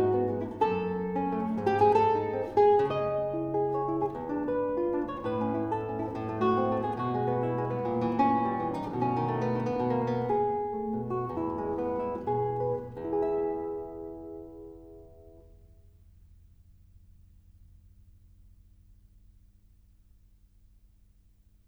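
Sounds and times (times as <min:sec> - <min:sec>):
Venezuelan waltz for guitar in E minor and E major: 0:00.0 - 0:15.5.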